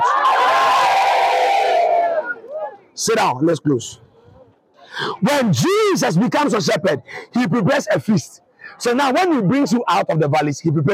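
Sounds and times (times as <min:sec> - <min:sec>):
audience shouting together: 0:00.0 - 0:02.7
speech: 0:03.0 - 0:04.1, 0:05.0 - 0:10.9.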